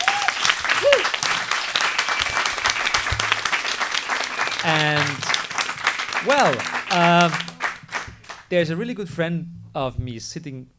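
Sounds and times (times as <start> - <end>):
crowd applause for panel: 0.0 - 8.5
speech: 4.6 - 5.3, 6.2 - 7.5, 8.5 - 10.7.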